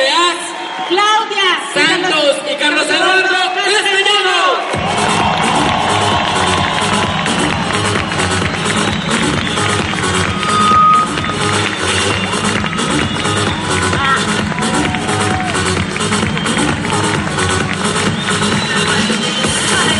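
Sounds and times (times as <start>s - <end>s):
large crowd cheering and shouting: 0.0s - 19.9s
large crowd applauding: 4.5s - 19.9s
whistles: 8.7s - 11.4s, 18.0s - 19.8s.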